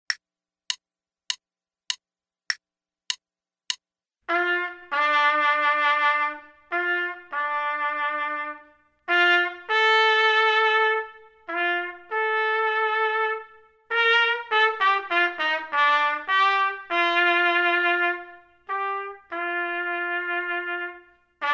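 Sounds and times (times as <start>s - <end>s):
trumpet: 4.3s - 21.5s.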